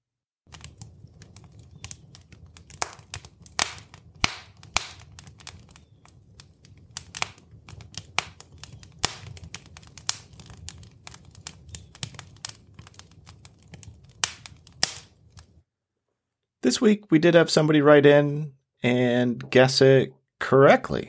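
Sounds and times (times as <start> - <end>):
fire crackling and popping: 0.5 - 15.6
speech: 16.7 - 21.0.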